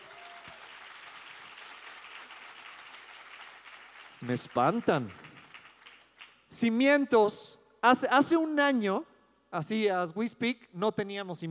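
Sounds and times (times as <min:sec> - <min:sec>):
audience applause: 0:00.0 - 0:06.4
speech: 0:04.2 - 0:05.2, 0:06.6 - 0:11.4.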